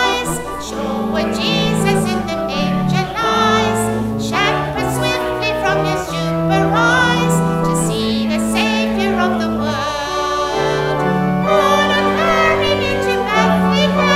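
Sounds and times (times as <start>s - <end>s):
calypso Christmas carol: 0.0s - 14.1s.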